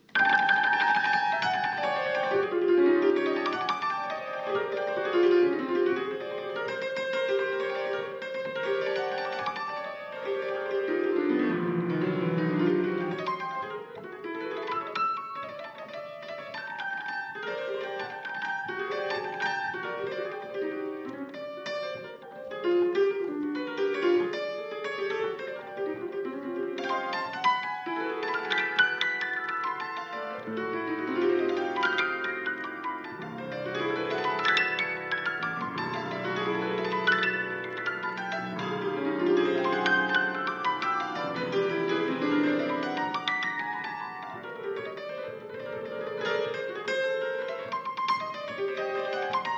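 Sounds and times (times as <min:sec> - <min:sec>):
live piano prelude: 0:00.0 - 0:49.5.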